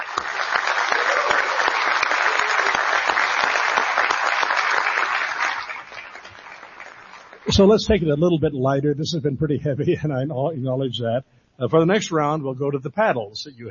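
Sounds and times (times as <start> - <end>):
audience applause: 0.0 - 7.7
speech: 7.5 - 13.6.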